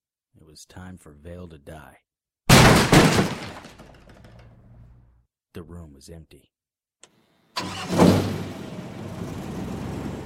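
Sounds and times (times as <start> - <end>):
speech: 0.5 - 2.1, 5.5 - 6.6
boat engine starting: 7.6 - 10.2.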